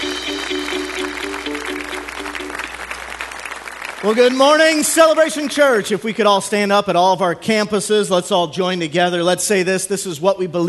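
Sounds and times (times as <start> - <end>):
church congregation clapping to welcome a pastor: 0.0 - 6.2
speech: 4.0 - 10.6.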